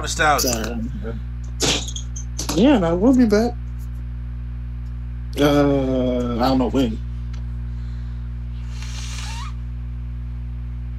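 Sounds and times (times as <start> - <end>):
speech: 0.0 - 1.8, 2.6 - 3.6, 5.3 - 7.1
nose blowing: 8.5 - 9.6.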